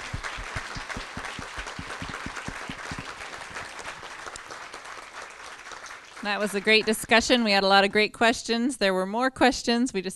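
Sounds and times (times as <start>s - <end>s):
audience applause for a panel: 0.0s - 7.1s
speech: 6.2s - 10.1s.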